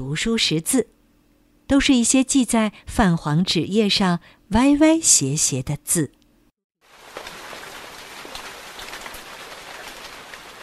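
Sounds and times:
speech: 0.0s - 1.0s, 1.7s - 6.2s
light rain pattering: 6.8s - 10.6s.

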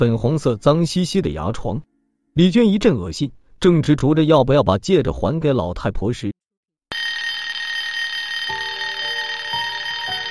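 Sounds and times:
speech: 0.0s - 6.4s
mobile phone ringing: 6.9s - 10.3s.

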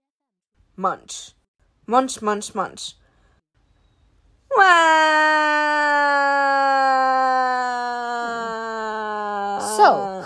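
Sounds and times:
speech: 0.8s - 3.0s, 4.6s - 5.7s, 9.8s - 10.2s
crying wail: 4.5s - 10.2s.

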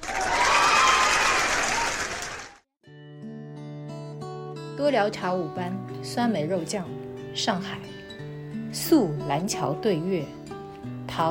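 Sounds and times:
applause: 0.0s - 2.6s
speech: 4.8s - 8.0s, 8.8s - 10.4s.

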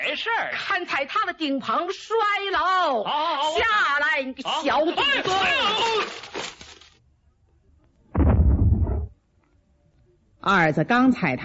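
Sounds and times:
speech: 0.2s - 6.3s, 10.4s - 11.4s
explosion from a homemade experiment: 8.2s - 9.1s.

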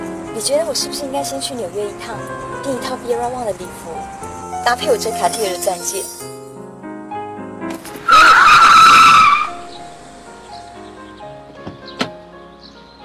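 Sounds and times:
speech: 0.4s - 6.3s
car emergency braking with tire skid: 8.0s - 9.9s.

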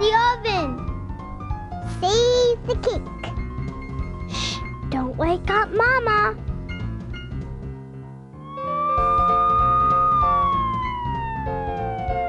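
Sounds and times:
music: 0.0s - 12.2s
fire engine siren: 8.4s - 12.2s.

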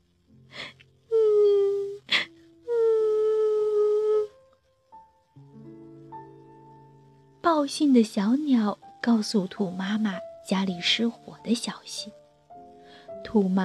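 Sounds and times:
sad crying: 0.6s - 4.3s
speech: 7.5s - 12.2s, 13.2s - 13.6s.

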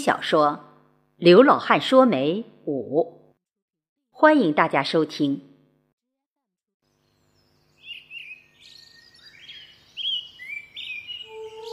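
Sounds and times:
speech: 0.0s - 3.2s, 4.2s - 5.5s
birds chirping and trilling: 6.9s - 11.7s
cuckoo calling: 8.2s - 11.7s.

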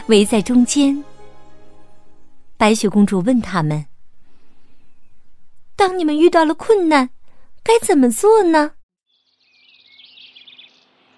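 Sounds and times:
speech: 0.1s - 1.1s, 2.6s - 3.9s, 5.8s - 8.8s
small bird chirping and singing: 9.0s - 11.1s.

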